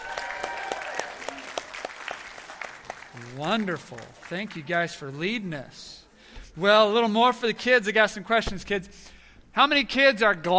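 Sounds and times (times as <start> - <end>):
audience applause for children's choir: 0.0 - 4.8
speech: 3.2 - 6.0, 6.6 - 10.5.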